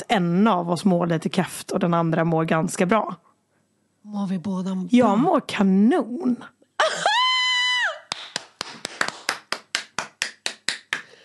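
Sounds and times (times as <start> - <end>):
speech: 0.0 - 3.3, 4.0 - 7.1
high whooping cry: 6.8 - 8.1
hands clapping in applause: 8.1 - 11.2.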